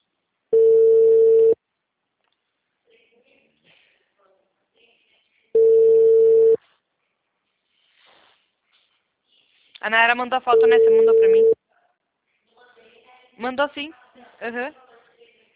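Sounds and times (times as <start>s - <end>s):
telephone ringback tone: 0.6s - 1.6s, 5.6s - 6.6s, 10.6s - 11.6s
speech: 9.8s - 11.6s, 13.4s - 14.8s.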